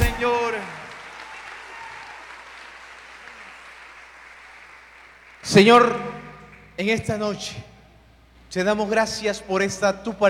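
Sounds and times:
audience applause: 0.0 - 5.4
speech: 5.4 - 6.1, 6.8 - 7.7, 8.5 - 10.2.

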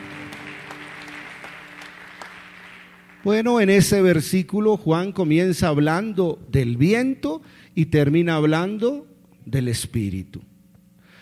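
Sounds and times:
crowd clapping: 0.0 - 4.0
speech: 3.2 - 10.5.

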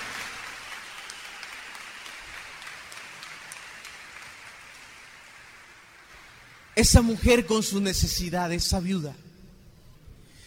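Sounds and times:
audience applause: 0.0 - 6.8
speech: 6.8 - 9.3.

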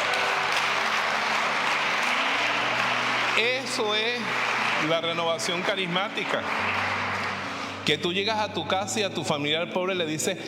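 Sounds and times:
audience applause: 0.0 - 8.0
speech: 3.4 - 6.9, 7.9 - 10.4.

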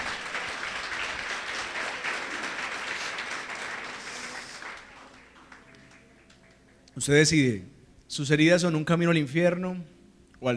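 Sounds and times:
crowd applause: 0.0 - 6.6
speech: 7.0 - 10.5.

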